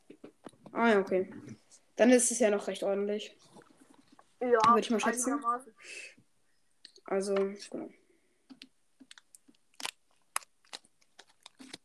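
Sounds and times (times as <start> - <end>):
speech: 0.1 - 3.5, 4.4 - 6.2, 7.1 - 8.0
person chewing and crunching a candy: 8.5 - 11.8.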